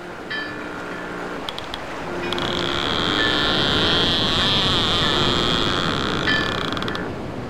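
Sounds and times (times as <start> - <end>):
boat: 0.0 - 7.4
buoy bell ringing: 0.3 - 1.2.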